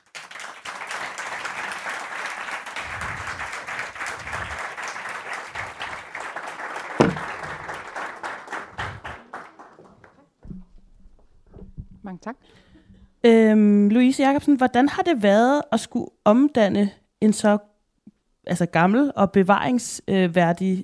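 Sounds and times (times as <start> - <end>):
audience applause for a museum director at the opening of Copenhagen's city museum: 0.0 - 10.4
soft low thump: 7.0 - 7.6
speech: 12.1 - 12.6, 13.2 - 17.7, 18.4 - 20.8.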